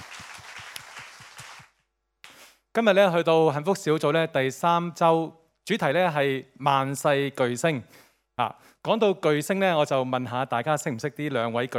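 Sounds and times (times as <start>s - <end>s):
church congregation clapping in rhythm in praise of Jesus Christ: 0.0s - 2.5s
speech: 2.8s - 11.7s.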